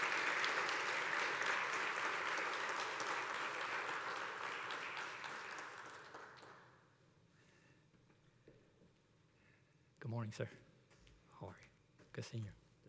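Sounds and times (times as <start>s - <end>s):
church congregation applauding to welcome a speaker: 0.0s - 6.8s
speech: 10.2s - 10.7s, 11.4s - 12.6s.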